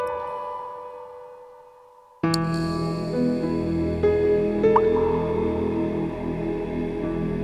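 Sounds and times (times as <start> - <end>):
strings: 2.2 - 7.4.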